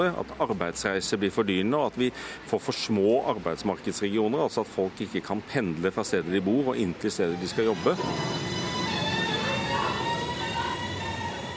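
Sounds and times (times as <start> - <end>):
speech: 0.0 - 8.5
train rushing along a double track between Oslo and towns: 6.4 - 11.5.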